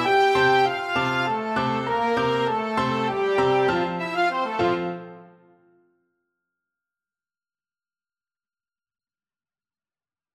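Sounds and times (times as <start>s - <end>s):
waltz in flexible unison: 0.0s - 5.4s.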